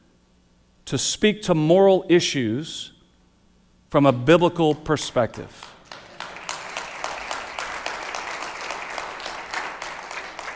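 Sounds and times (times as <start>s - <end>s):
speech: 0.9s - 3.0s, 3.9s - 5.7s
audience applause: 5.8s - 10.5s.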